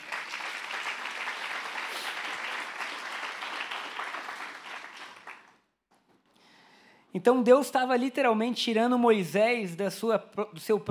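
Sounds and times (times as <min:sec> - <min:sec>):
audience applauding: 0:00.0 - 0:05.7
speech: 0:07.1 - 0:10.8.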